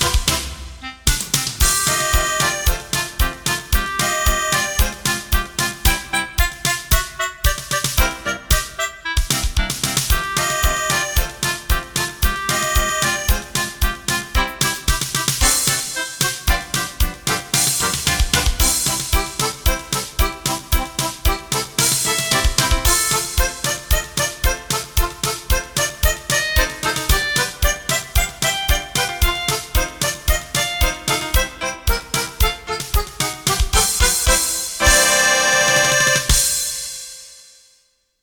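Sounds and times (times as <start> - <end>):
clarinet or flute: 0.0 - 5.2, 5.9 - 9.4, 10.1 - 14.5, 21.8 - 32.1, 33.8 - 37.3
piano: 0.0 - 36.7
accordion: 0.0 - 37.3
drums: 0.0 - 37.7
guitar: 1.6 - 36.6.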